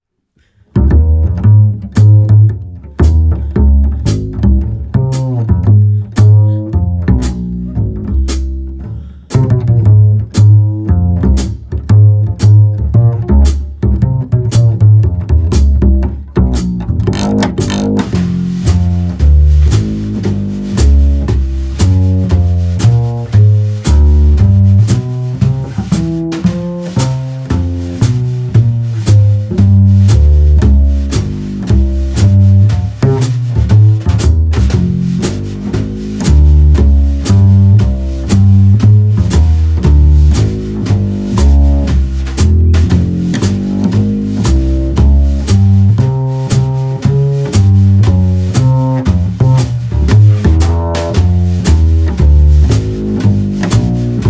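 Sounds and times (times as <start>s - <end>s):
long chilli drums: 0.4s - 54.2s.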